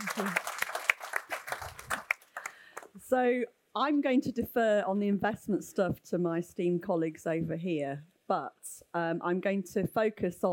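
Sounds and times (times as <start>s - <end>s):
audience applause: 0.0s - 2.9s
speech: 3.1s - 10.5s.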